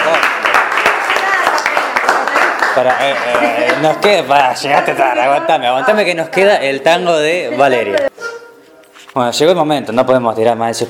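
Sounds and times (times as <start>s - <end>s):
audience applauding after a song: 0.0s - 4.3s
speech: 2.8s - 8.2s, 9.2s - 10.8s.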